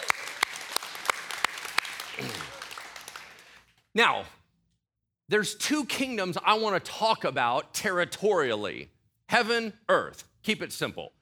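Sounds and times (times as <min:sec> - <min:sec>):
audience clapping: 0:00.0 - 0:03.9
speech: 0:02.2 - 0:02.5, 0:04.0 - 0:04.4, 0:05.3 - 0:11.2.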